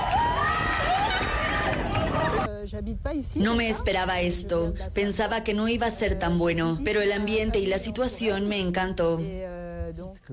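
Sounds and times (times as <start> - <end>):
crowd applauding during solar eclipse: 0.0 - 2.5
speech: 2.8 - 10.3.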